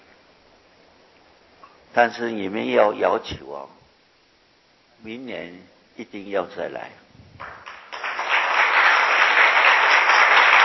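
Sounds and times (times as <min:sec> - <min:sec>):
speech: 0:01.9 - 0:03.8, 0:05.0 - 0:07.5
loud audience applause: 0:07.4 - 0:10.6.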